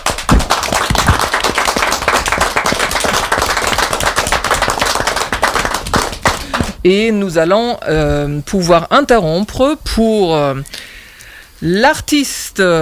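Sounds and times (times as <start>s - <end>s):
applause sound effect: 0.0s - 6.8s
speech: 6.8s - 10.8s, 11.6s - 12.7s.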